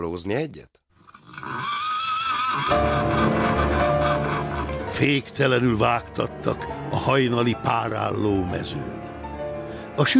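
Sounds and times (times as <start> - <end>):
speech: 0.0 - 0.8, 2.6 - 3.4, 5.0 - 9.0, 10.0 - 10.1
horse neighing in a stable at early dawn: 1.0 - 4.9.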